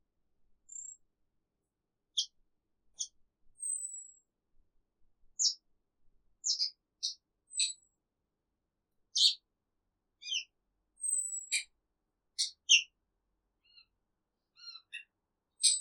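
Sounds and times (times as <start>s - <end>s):
exotic cage bird uttering varied high chirps: 0.7s - 1.0s, 3.0s - 4.2s, 5.4s - 5.6s, 6.4s - 7.8s, 9.2s - 9.4s, 10.2s - 11.7s, 12.4s - 12.9s, 13.6s - 13.9s, 14.5s - 15.7s.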